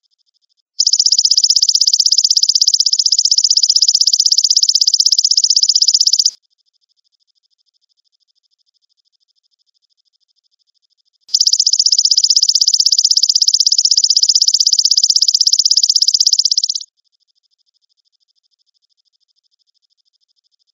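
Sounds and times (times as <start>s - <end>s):
grasshopper trilling: 0.8s - 6.4s, 11.3s - 16.8s.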